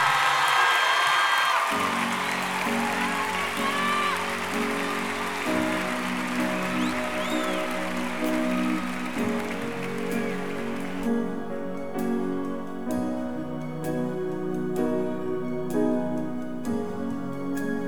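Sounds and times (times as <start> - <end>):
crowd applause: 0.0 - 11.3
sustained music tones: 1.7 - 17.8.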